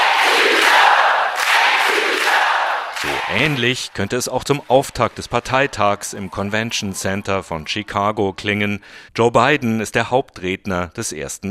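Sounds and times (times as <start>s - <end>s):
crowd chanting: 0.0s - 8.4s
speech: 3.3s - 11.4s.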